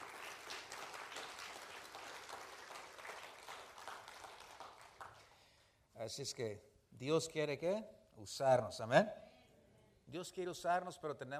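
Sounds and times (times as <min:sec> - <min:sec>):
audience applause: 0:00.0 - 0:05.3
speech: 0:06.0 - 0:09.2, 0:10.1 - 0:11.3.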